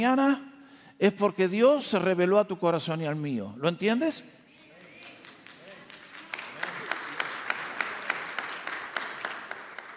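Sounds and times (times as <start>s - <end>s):
speech: 0.0s - 4.4s
crowd applauding: 4.6s - 9.9s.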